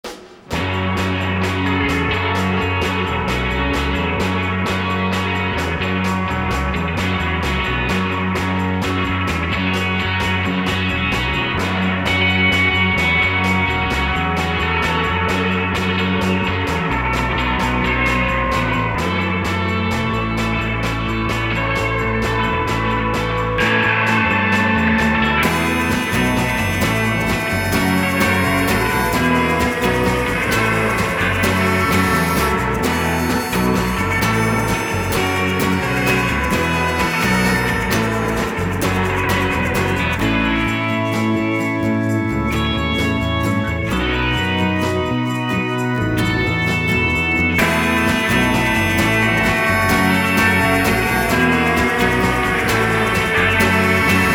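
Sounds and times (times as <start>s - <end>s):
rock concert audience: 0.0s - 54.3s.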